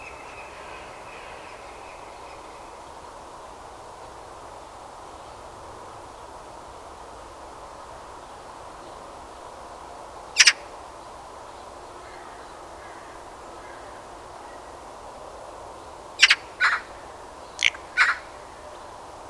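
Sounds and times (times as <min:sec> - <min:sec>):
Eurasian magpie Pica pica giving harsh grating calls: 0:17.6 - 0:18.3.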